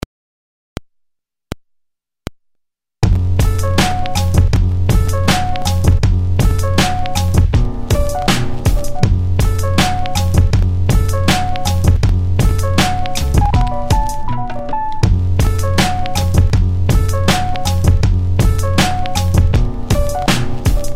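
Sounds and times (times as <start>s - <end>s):
music beat: 3.0s - 20.9s.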